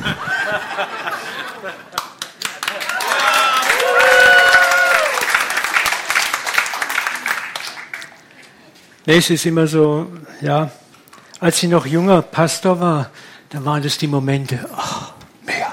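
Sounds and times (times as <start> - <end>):
laughter: 0.0 - 3.1
speech: 0.8 - 2.1, 9.0 - 10.8, 11.4 - 14.9
audience clapping: 1.7 - 8.4.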